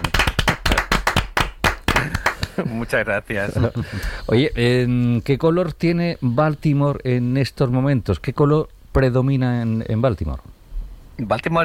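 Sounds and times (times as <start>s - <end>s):
ovation, hands clapping: 0.0s - 2.6s
speech: 2.0s - 10.6s, 11.2s - 11.6s.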